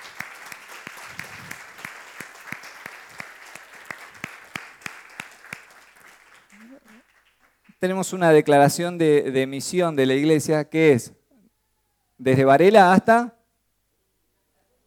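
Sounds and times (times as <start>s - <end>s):
church congregation clapping in unison: 0.0s - 8.8s
speech: 7.8s - 11.2s, 12.2s - 13.4s.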